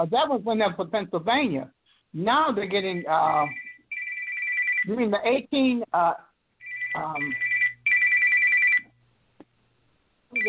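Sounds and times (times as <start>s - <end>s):
speech: 0.0s - 3.6s, 4.8s - 6.3s, 6.9s - 7.5s
telephone ringing: 2.9s - 5.0s, 6.6s - 9.0s.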